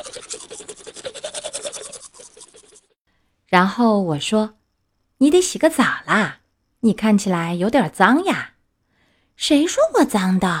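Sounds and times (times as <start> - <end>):
teeth being brushed with a toothbrush: 0.0 - 3.0
speech: 3.5 - 4.6, 5.2 - 8.5, 9.4 - 10.5.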